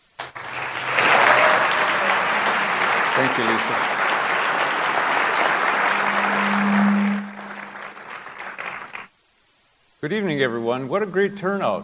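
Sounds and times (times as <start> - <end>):
audience applause at a SUNY New Paltz distinguished speaker series event: 0.1 - 9.1
speech: 3.2 - 4.0, 10.0 - 11.8.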